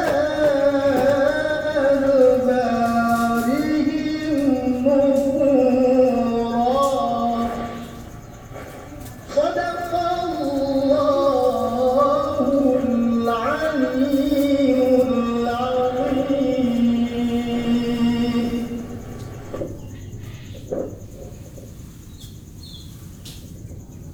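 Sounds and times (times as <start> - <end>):
man singing at a mosque in Indonesia: 0.0 - 8.2, 9.3 - 19.8.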